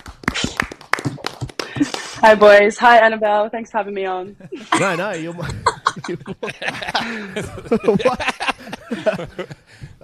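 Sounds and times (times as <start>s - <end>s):
hands clapping: 0.0s - 2.3s
speech: 2.2s - 9.8s
laughter: 4.4s - 10.0s.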